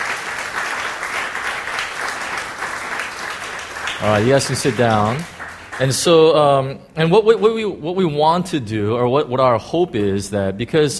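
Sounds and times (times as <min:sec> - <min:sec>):
audience applause: 0:00.0 - 0:06.3
speech: 0:04.0 - 0:10.9.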